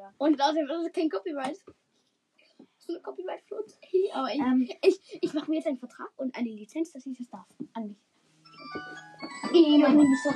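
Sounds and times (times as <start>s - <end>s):
speech: 0.1s - 1.8s, 2.9s - 8.1s, 8.7s - 10.3s
mobile phone ringing: 8.5s - 10.3s.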